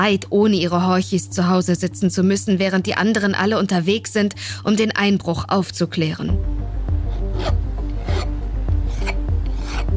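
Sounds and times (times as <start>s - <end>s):
speech: 0.0s - 6.8s
metal file rasping on a ring at a goldsmith's workbench: 7.1s - 9.9s.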